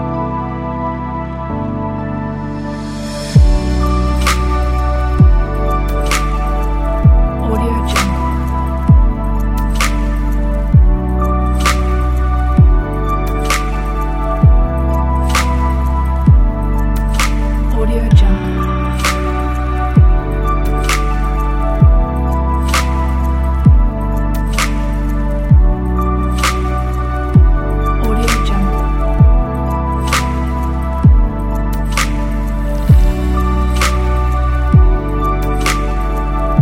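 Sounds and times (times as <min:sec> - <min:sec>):
ambient chill electronic music: 0:00.0 - 0:36.6.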